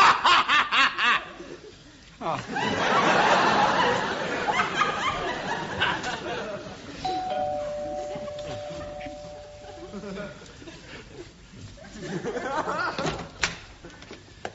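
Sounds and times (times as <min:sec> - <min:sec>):
laughter: 0:00.0 - 0:07.0, 0:08.0 - 0:13.3
two-tone doorbell chime: 0:07.0 - 0:10.2.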